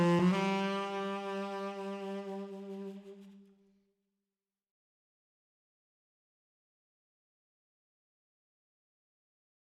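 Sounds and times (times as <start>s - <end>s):
heartfelt street tenor saxophone playing: 0.0s - 3.4s.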